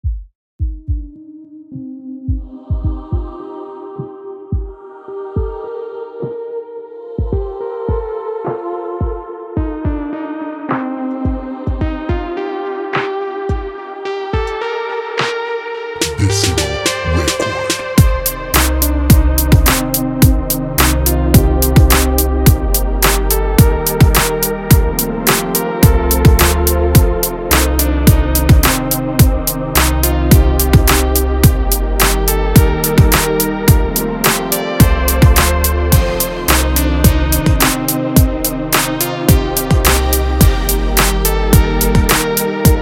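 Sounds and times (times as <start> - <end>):
music beat: 0.0 - 4.8, 7.2 - 42.8.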